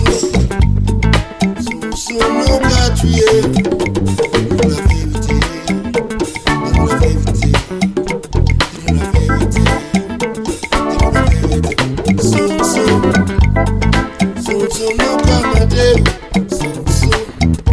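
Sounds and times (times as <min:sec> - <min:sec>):
African band: 0:00.0 - 0:17.7.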